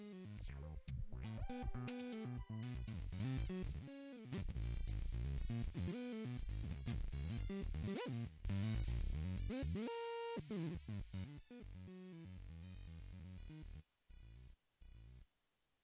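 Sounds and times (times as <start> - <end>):
synthesizer internal patch groove: 0.0 - 14.3.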